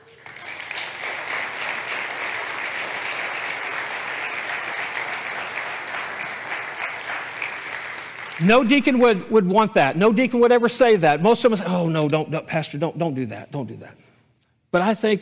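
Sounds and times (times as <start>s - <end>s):
crowd clapping: 0.0s - 9.6s
speech: 8.4s - 14.1s, 14.7s - 15.2s.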